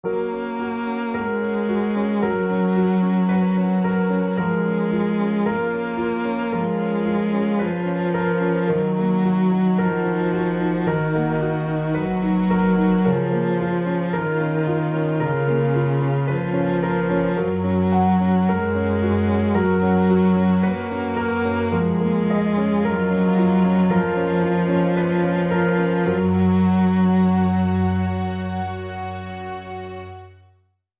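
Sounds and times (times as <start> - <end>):
strings: 0.0 - 30.6
piano: 0.0 - 30.8.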